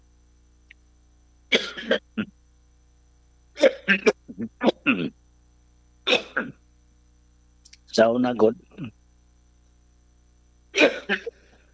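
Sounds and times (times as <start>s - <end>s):
short harsh cough: 1.5s - 2.3s, 3.6s - 5.1s, 6.1s - 6.6s, 10.8s - 11.5s
speech: 1.9s - 2.3s, 8.0s - 9.0s.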